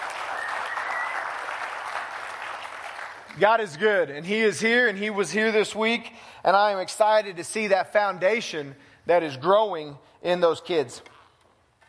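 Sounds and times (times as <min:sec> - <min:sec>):
audience applause: 0:00.0 - 0:03.3
speech: 0:03.4 - 0:11.1.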